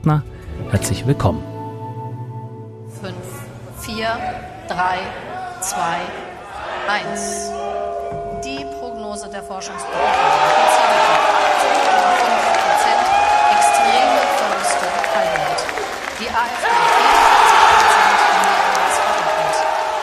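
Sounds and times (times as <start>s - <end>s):
speech: 0.0s - 1.5s, 3.8s - 6.3s, 6.9s - 7.8s, 9.2s - 11.3s
crowd cheering at election party: 3.9s - 8.3s, 9.6s - 20.0s.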